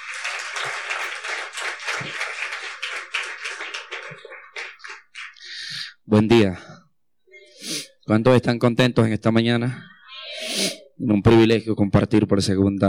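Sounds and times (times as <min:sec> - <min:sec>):
audience applause: 0:00.0 - 0:05.9
speech: 0:06.1 - 0:06.7, 0:08.1 - 0:09.9, 0:10.6 - 0:12.8.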